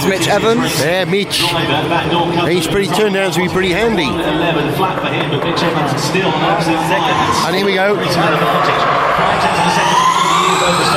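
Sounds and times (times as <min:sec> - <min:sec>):
speech: 0:00.0 - 0:10.0
crowd noise: 0:00.0 - 0:10.9
race car tyres screeching for grip cornering: 0:03.5 - 0:10.9.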